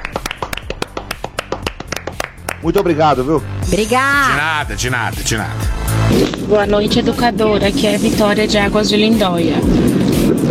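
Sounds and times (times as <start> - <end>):
hand clapping: 0.0 - 3.0
speech: 2.6 - 10.0.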